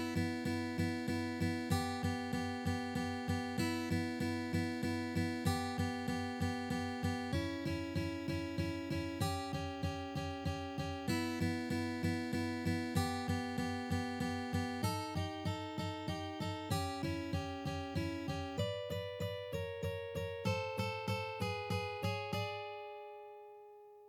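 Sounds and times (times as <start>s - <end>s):
blues played on two strings of an acoustic guitar: 0.0s - 23.7s.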